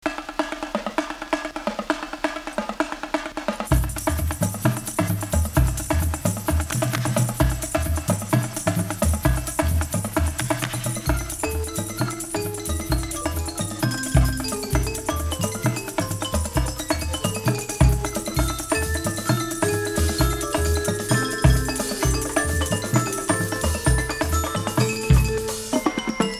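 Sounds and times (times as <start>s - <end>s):
marching band: 0.0s - 26.3s.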